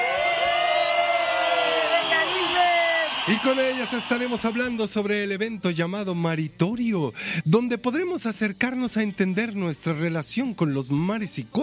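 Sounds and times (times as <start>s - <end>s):
audience applause: 0.0s - 4.8s
speech: 3.3s - 11.6s.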